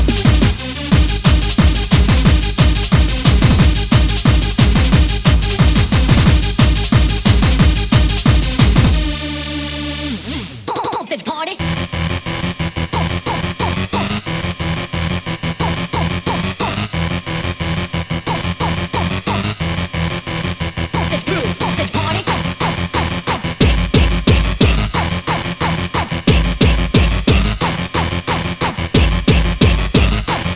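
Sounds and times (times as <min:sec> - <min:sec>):
hardcore gabber music: 0:00.0 - 0:30.5.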